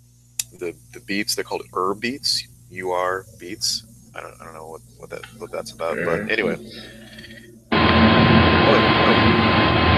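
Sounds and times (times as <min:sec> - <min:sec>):
speech: 0:00.5 - 0:07.2
vacuum cleaner running: 0:07.7 - 0:09.9.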